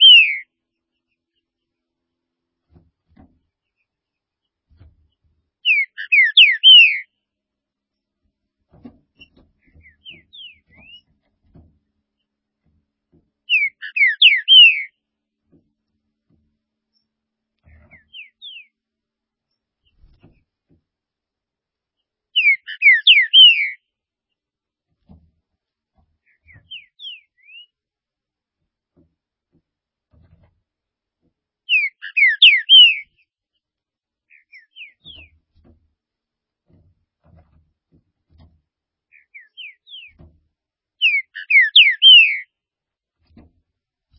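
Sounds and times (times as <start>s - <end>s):
green-winged saltator whistling song: 0.0s - 0.5s, 5.6s - 7.1s, 13.5s - 14.9s, 22.4s - 23.8s, 26.5s - 27.7s, 31.7s - 33.1s, 41.0s - 42.5s.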